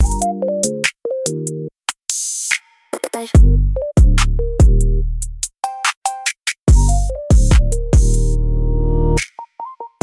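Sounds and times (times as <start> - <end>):
music loop: 0.0 - 10.0.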